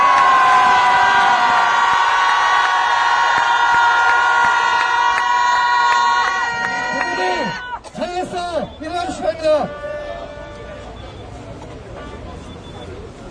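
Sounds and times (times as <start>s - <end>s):
applause: 0.0s - 7.6s
crowd cheering: 0.0s - 11.0s.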